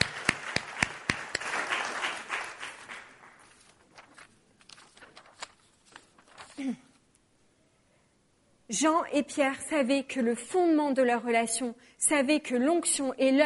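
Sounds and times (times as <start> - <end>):
audience applause: 0.0 - 3.4
speech: 6.6 - 6.8, 8.7 - 13.4.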